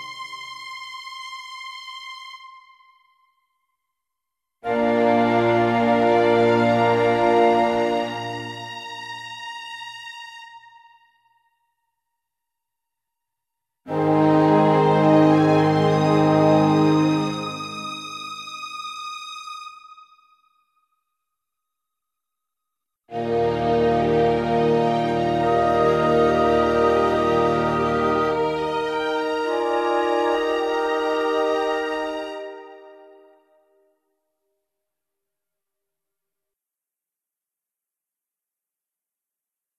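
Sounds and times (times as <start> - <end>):
instrumental music: 4.6 - 11.6, 13.9 - 20.8, 23.1 - 33.8.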